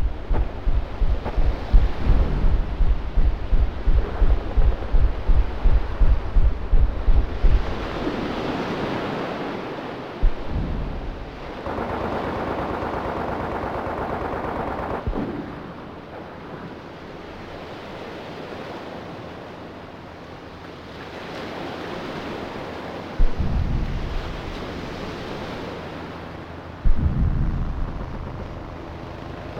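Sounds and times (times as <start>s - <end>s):
war ambience: 0.0s - 8.5s, 10.1s - 17.4s, 23.2s - 29.5s.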